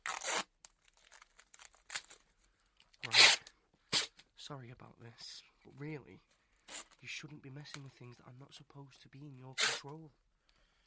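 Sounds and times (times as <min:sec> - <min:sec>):
tape being torn to bind someone's arms and legs to a chair: 0:00.0 - 0:02.2, 0:03.0 - 0:04.2, 0:09.6 - 0:09.9
speech: 0:04.5 - 0:06.4, 0:07.0 - 0:10.3.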